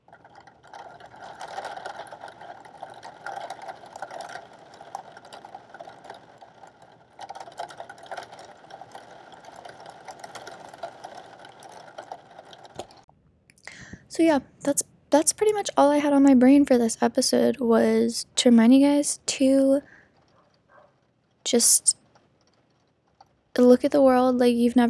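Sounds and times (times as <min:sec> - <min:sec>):
steady rain falling: 0:00.0 - 0:13.1
speech: 0:14.2 - 0:20.0, 0:21.5 - 0:22.0, 0:23.6 - 0:24.8.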